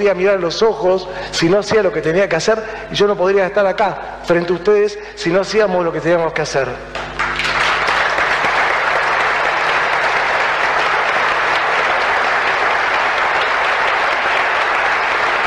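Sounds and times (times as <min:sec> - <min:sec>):
speech: 0:00.0 - 0:07.2
audience applause: 0:07.0 - 0:15.4.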